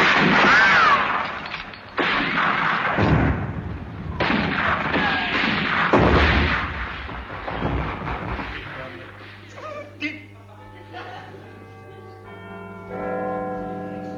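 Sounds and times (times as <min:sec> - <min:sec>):
cannon fire opening a battle: 0:00.0 - 0:09.4
laughter: 0:09.4 - 0:12.1.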